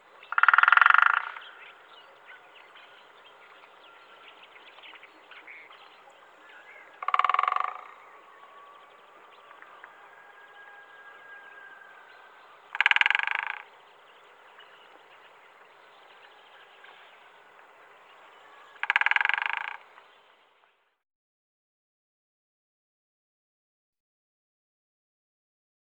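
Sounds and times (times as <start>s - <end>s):
Syrian woodpecker calls: 0.1s - 20.3s.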